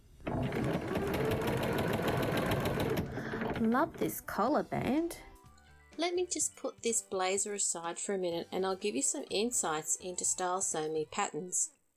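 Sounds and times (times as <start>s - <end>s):
sewing machine stitching a seam: 0.0s - 4.1s
speech: 3.6s - 5.3s, 6.0s - 11.8s.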